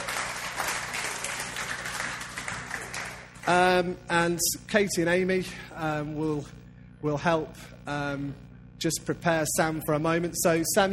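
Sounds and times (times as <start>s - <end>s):
audience applause: 0.0s - 3.6s
speech: 3.5s - 10.9s.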